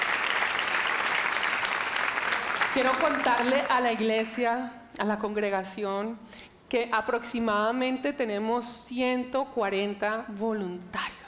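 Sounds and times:
audience applauding volunteers: 0:00.0 - 0:04.0
speech: 0:02.8 - 0:11.1.

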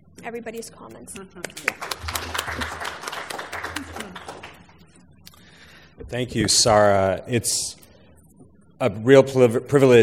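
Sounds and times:
speech: 0:00.2 - 0:02.8, 0:06.0 - 0:07.8, 0:08.8 - 0:10.0
audience applause: 0:01.6 - 0:04.8.

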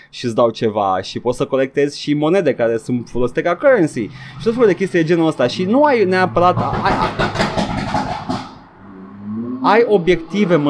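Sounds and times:
speech: 0:00.1 - 0:07.5, 0:09.6 - 0:10.6
car with broken exhaust muffler passing: 0:03.0 - 0:10.6.

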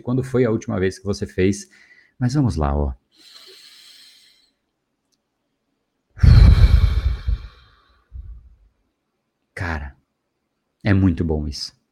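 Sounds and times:
speech: 0:00.0 - 0:03.4, 0:10.9 - 0:11.8
deep breath during a calming breathing exercise: 0:03.1 - 0:04.6, 0:06.2 - 0:08.6.

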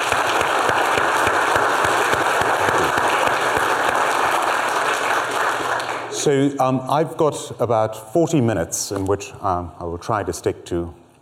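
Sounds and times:
audience applause: 0:00.0 - 0:06.2
speech: 0:06.2 - 0:11.0.

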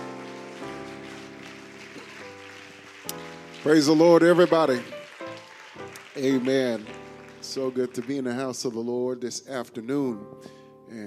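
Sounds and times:
audience applauding: 0:00.0 - 0:08.8
speech: 0:03.6 - 0:05.0, 0:06.2 - 0:11.0.

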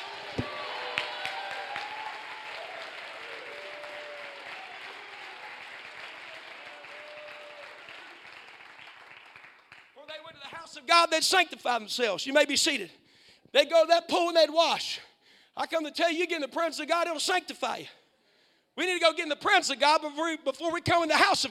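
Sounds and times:
audience clapping: 0:00.0 - 0:10.6
speech: 0:10.8 - 0:18.0, 0:18.8 - 0:21.4.

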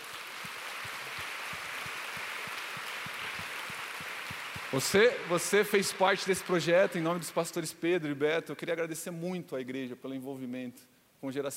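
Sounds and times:
audience applause: 0:00.0 - 0:07.6
speech: 0:04.7 - 0:11.5.

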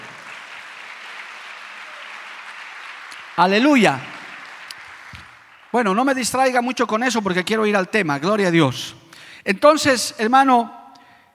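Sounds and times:
applause: 0:00.0 - 0:07.0
speech: 0:03.4 - 0:04.1, 0:05.7 - 0:10.8.

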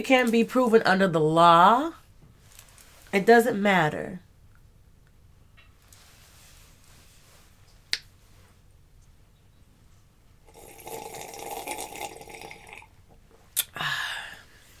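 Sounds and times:
speech: 0:00.0 - 0:02.0, 0:03.1 - 0:04.2
person sipping tea: 0:10.5 - 0:12.9.

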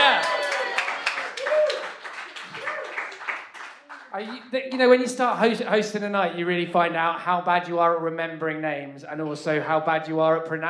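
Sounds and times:
whoops and voices calling out: 0:00.0 - 0:01.9
crowd applauding: 0:00.0 - 0:04.6
speech: 0:04.2 - 0:10.6.

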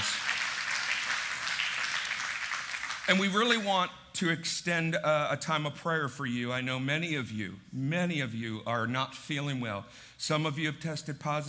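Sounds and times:
congregation applauding: 0:00.0 - 0:03.7
speech: 0:03.1 - 0:11.4.

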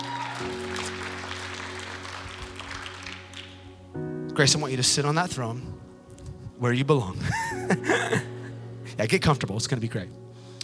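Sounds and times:
audience applause welcoming a guest onto a stage: 0:00.0 - 0:03.6
speech: 0:04.4 - 0:05.9, 0:06.6 - 0:08.2, 0:09.0 - 0:10.2.

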